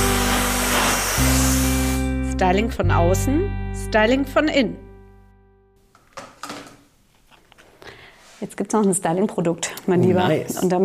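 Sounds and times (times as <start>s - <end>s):
hair dryer blowing: 0.0s - 2.2s
speech: 2.4s - 4.9s, 8.4s - 10.8s.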